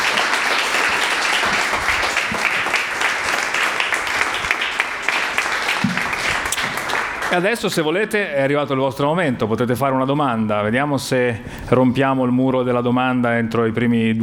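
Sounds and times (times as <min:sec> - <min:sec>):
audience applause: 0:00.0 - 0:07.9
speech: 0:07.3 - 0:14.2.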